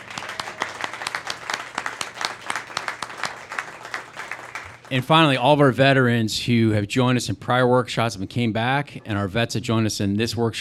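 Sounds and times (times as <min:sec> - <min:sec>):
room full of people applauding: 0:00.0 - 0:05.0
speech: 0:04.9 - 0:10.5.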